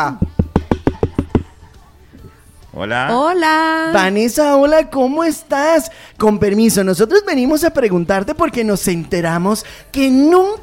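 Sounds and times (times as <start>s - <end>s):
speech: 0.0s - 0.3s, 2.8s - 10.6s
knocking on a motel room door: 0.0s - 1.6s.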